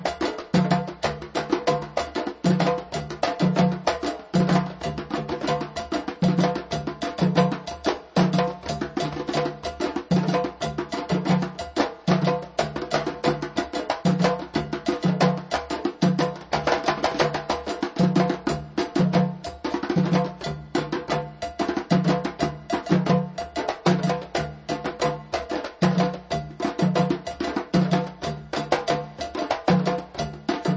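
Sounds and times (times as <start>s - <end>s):
drums: 0.0s - 30.7s.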